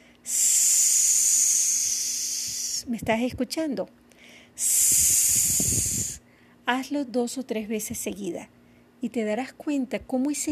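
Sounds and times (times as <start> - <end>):
person exhaling: 0.3 - 2.8, 4.2 - 6.2
speech: 2.8 - 4.0, 6.7 - 10.5.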